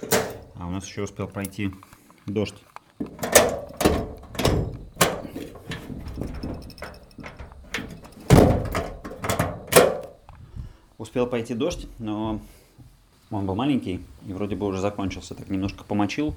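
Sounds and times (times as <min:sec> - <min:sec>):
house door being closed and secured: 0:00.0 - 0:00.6, 0:03.1 - 0:06.6, 0:07.2 - 0:10.2
speech: 0:00.7 - 0:03.4, 0:11.1 - 0:12.6, 0:13.3 - 0:16.3.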